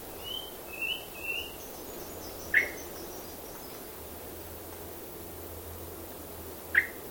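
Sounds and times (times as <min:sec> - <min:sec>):
bird chirping in a swamp: 0:00.1 - 0:03.8, 0:06.7 - 0:07.0.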